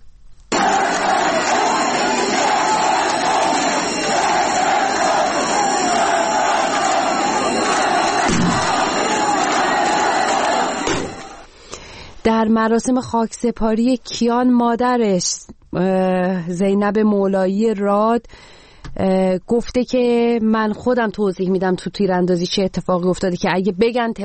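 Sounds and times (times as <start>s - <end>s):
crowd chanting anti-government slogans at a child's funeral in Izeh: 0.5s - 11.5s
speech: 12.4s - 24.2s.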